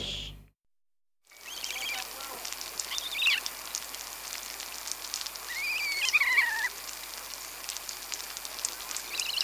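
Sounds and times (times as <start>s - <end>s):
crab-plover chorus of overlapping barking calls: 1.4s - 3.9s, 5.3s - 6.9s, 8.8s - 9.4s.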